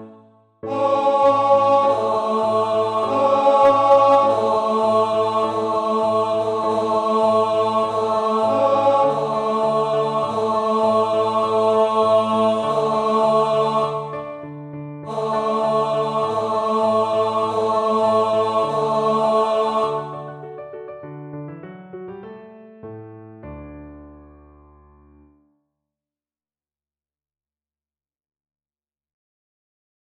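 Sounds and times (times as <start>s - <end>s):
tenor singing: 0.6s - 14.2s, 15.1s - 20.3s.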